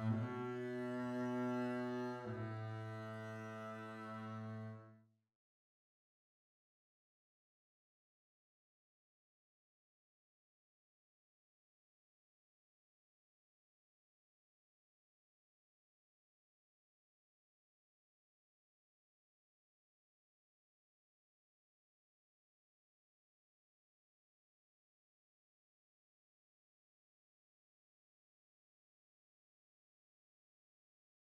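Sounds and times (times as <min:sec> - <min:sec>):
double bass: 0:00.0 - 0:04.8.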